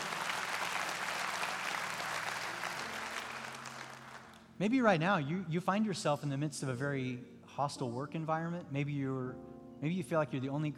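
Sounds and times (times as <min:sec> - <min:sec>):
audience applause: 0:00.0 - 0:04.5
speech: 0:04.6 - 0:10.7.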